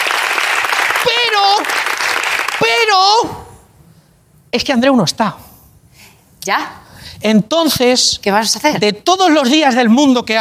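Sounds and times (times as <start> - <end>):
studio audience applause at a late-night talk show: 0.0 - 2.7
speech: 2.9 - 3.4, 4.5 - 5.5, 6.4 - 10.3.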